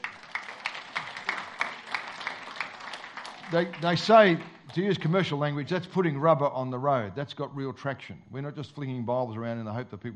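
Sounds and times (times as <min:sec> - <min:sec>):
audience clapping in rhythm: 0:00.0 - 0:05.8
speech: 0:03.5 - 0:10.1.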